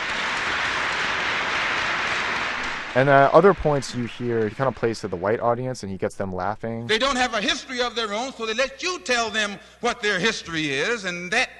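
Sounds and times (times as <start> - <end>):
raucous applause from Nation of Islam members: 0.0 - 6.0
speech: 2.9 - 11.5.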